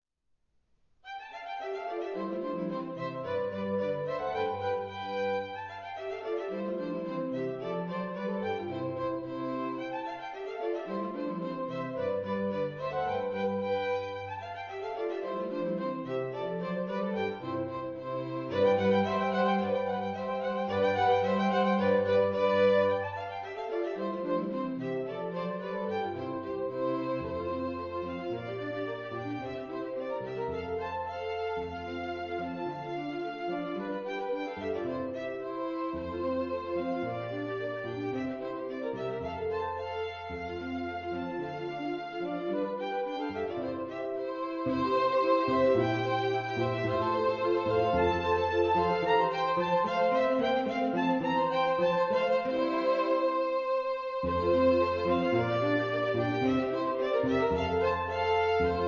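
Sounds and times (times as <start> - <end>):
miniature trio music in C major: 1.1 - 58.8.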